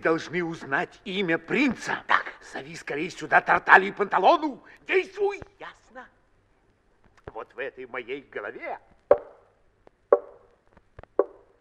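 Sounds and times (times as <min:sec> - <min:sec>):
speech: 0:00.0 - 0:06.2, 0:07.4 - 0:08.9
knocking: 0:09.1 - 0:09.5, 0:10.1 - 0:11.5.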